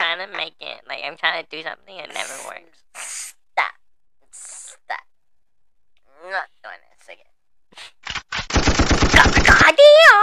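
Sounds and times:
speech: 0.5s - 3.7s, 6.2s - 7.3s
gunshots: 8.1s - 9.7s.

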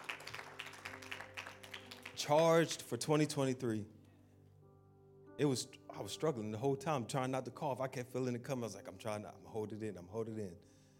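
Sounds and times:
group hand clapping in praise: 0.0s - 2.7s
speech: 2.2s - 4.0s, 5.4s - 10.8s.

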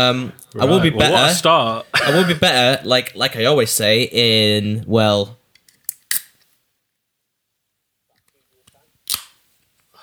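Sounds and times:
laughter: 0.0s - 3.7s
speech: 0.0s - 5.4s
beer being opened with cracking snaps: 5.6s - 6.4s, 9.1s - 9.4s.

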